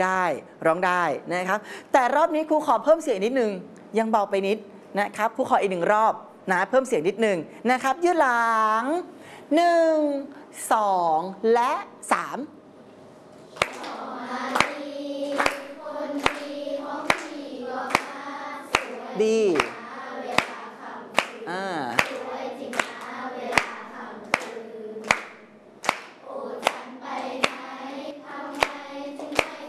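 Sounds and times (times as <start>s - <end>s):
speech: 0.0s - 12.6s, 19.2s - 19.8s
group clapping hands: 13.5s - 29.6s.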